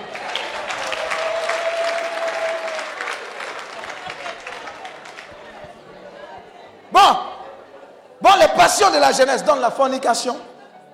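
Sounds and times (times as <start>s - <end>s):
church congregation applauding: 0.0s - 5.7s
crowd voices cheering: 0.0s - 10.9s
speech: 8.8s - 10.5s.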